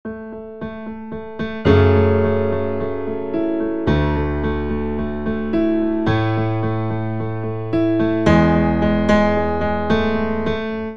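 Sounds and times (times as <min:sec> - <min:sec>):
piano: 0:00.0 - 0:10.9.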